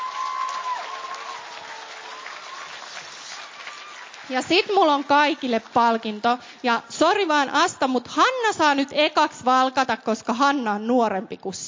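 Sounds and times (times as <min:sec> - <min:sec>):
audience applause: 0:00.0 - 0:05.8
speech: 0:04.3 - 0:11.6.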